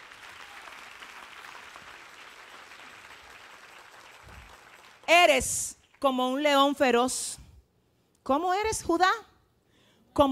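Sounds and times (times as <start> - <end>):
audience applause: 0.0 - 5.1
speech: 5.1 - 7.4, 8.3 - 9.3.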